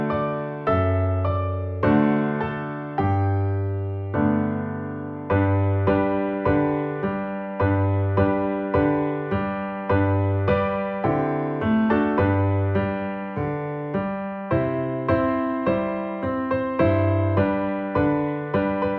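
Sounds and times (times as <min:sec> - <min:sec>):
piano tune: 0:00.0 - 0:18.9.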